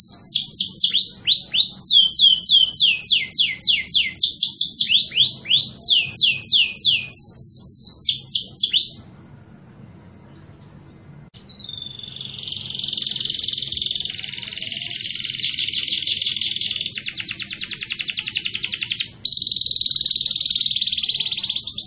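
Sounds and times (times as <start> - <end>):
canary buzzing trill and falling whistled notes: 0.0 - 9.2, 10.0 - 21.8.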